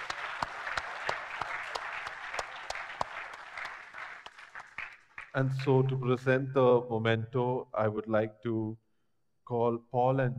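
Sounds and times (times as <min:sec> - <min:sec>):
audience applause: 0:00.0 - 0:05.5
speech: 0:05.4 - 0:08.8, 0:09.5 - 0:10.3.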